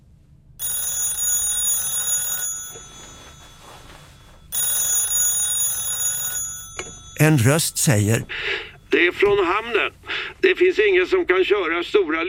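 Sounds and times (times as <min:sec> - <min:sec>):
old-style telephone bell ringing: 0:00.6 - 0:08.6
speech: 0:07.2 - 0:12.2.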